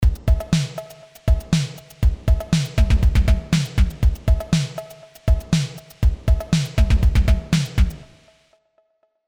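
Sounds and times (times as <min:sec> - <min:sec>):
ramped percussion through plate reverb: 0:00.0 - 0:08.6.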